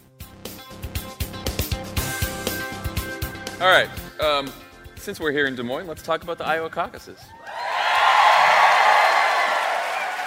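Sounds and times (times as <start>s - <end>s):
speech: 3.6s - 7.4s
audience applause: 7.4s - 10.2s.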